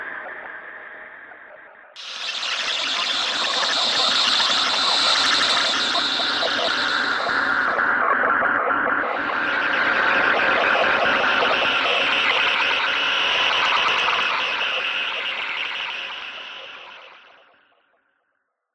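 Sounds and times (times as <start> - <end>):
weather radio noise: 2.0 - 16.9.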